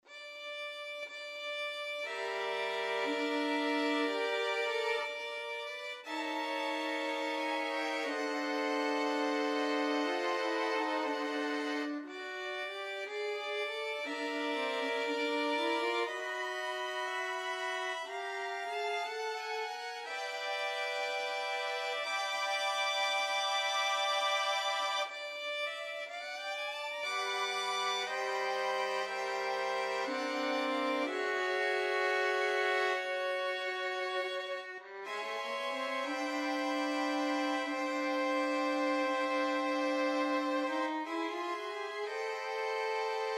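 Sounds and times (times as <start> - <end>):
jazzy violin ensemble: 0.0 - 43.3.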